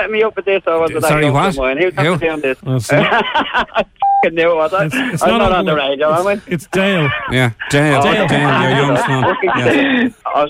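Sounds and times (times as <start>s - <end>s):
speech: 0.0s - 10.4s
laughter: 0.9s - 4.0s, 4.6s - 10.4s
touch-tone beep from a phone keypad: 4.0s - 4.3s.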